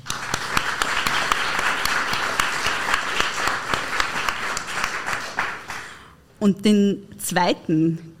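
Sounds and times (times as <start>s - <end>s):
audience applause: 0.0s - 6.0s
speech: 6.4s - 8.1s.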